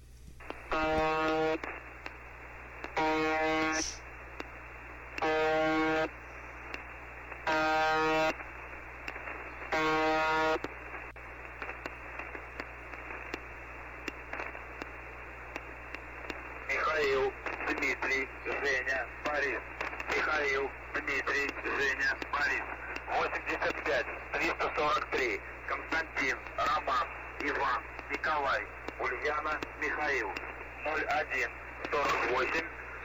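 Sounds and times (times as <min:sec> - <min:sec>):
crackling hiss: 0:00.0 - 0:33.0
shortwave radio station's harsh buzz: 0:00.4 - 0:33.0
voice: 0:03.4 - 0:04.0, 0:16.6 - 0:33.0.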